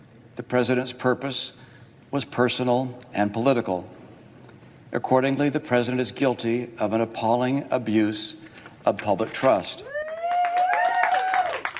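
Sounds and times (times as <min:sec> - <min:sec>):
speech: 0:00.4 - 0:04.0, 0:04.9 - 0:09.9
audience applause: 0:09.9 - 0:11.7.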